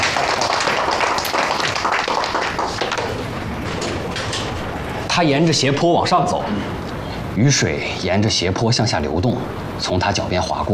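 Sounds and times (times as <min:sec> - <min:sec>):
audience clapping in welcome: 0:00.0 - 0:04.4
speech: 0:05.2 - 0:06.8, 0:07.4 - 0:10.7.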